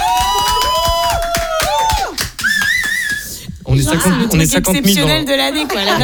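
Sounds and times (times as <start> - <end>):
handclaps: 0.0 - 3.4
small group whooping and shouting: 0.0 - 4.3
speech: 3.8 - 6.0.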